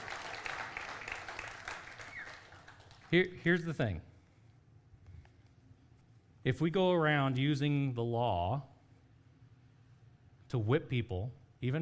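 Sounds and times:
audience applause: 0.0s - 3.1s
speech: 3.1s - 4.1s, 6.4s - 8.7s, 10.5s - 11.8s.

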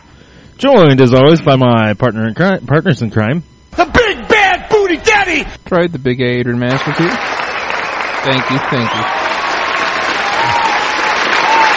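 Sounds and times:
speech: 0.5s - 4.1s, 4.9s - 7.3s, 8.2s - 9.3s
studio crowd applause: 6.7s - 11.7s.

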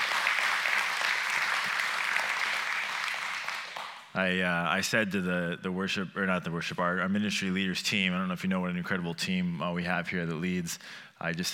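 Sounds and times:
audience applause: 0.0s - 4.1s
speech: 4.2s - 11.5s.

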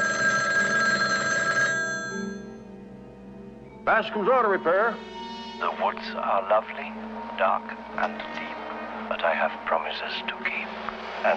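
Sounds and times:
telephone bell ringing: 0.0s - 2.6s
speech: 3.9s - 8.4s, 9.1s - 11.3s.

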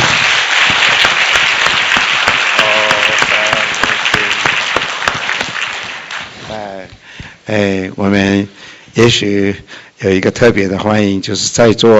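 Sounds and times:
audience applause: 0.0s - 6.7s
speech: 7.5s - 11.9s.

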